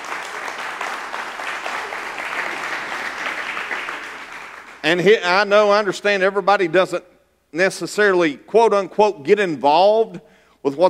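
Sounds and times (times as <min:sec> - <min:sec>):
audience clapping hands in praise: 0:00.0 - 0:05.4
speech: 0:04.8 - 0:10.8.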